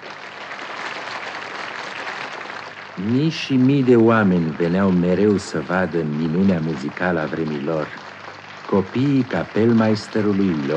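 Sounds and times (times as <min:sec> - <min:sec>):
applause from a large crowd: 0:00.0 - 0:10.7
speech: 0:03.0 - 0:08.0, 0:08.7 - 0:10.7.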